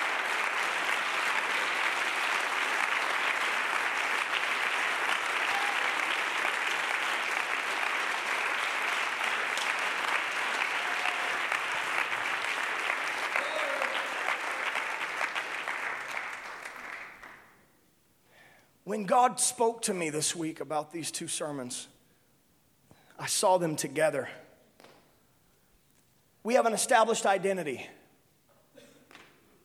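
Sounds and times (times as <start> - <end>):
audience applauding: 0.0 - 17.5
speech: 18.9 - 21.9, 23.2 - 24.4, 26.5 - 28.0.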